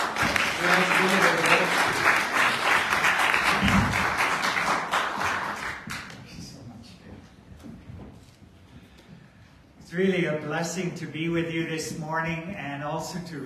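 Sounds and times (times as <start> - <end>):
church congregation applauding a guest speaker: 0.0 - 6.6
speech: 0.6 - 1.3, 10.0 - 13.4.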